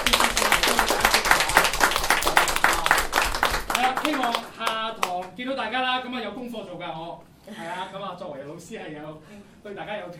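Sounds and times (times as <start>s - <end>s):
audience applause in a church class: 0.0s - 5.2s
speech: 4.1s - 10.1s.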